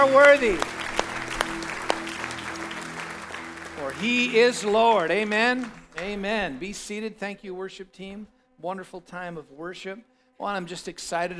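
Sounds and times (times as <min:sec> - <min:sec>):
speech: 0:00.0 - 0:00.8, 0:03.8 - 0:11.3
held musical note: 0:00.0 - 0:05.3
church congregation clapping hands: 0:00.0 - 0:06.9.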